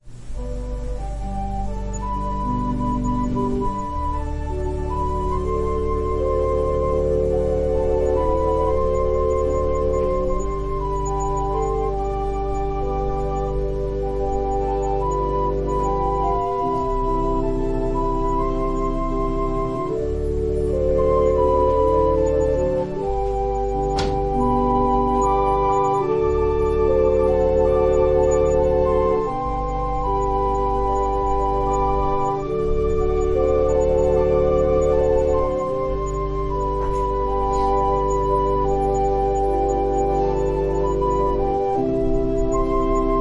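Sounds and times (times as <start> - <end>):
organ prelude: 0.0 - 43.2.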